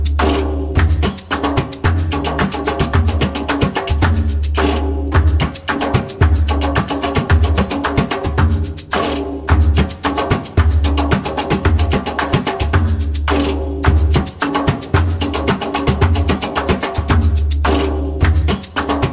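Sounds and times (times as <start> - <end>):
djembe: 0.0 - 19.1
short fast spoken maqsum rhythm syllables: 0.0 - 19.1.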